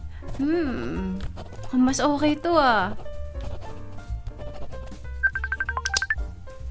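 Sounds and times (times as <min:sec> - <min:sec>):
speech: 0:00.4 - 0:03.0
telephone melodic electronic ringtone for an incoming call: 0:05.2 - 0:06.2.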